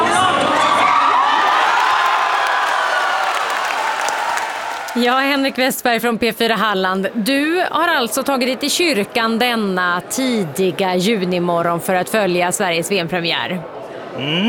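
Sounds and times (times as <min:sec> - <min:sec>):
crowd cheering in Harplinge church in Sweden after a World Cup goal: 0:00.2 - 0:05.0
speech: 0:05.0 - 0:14.4.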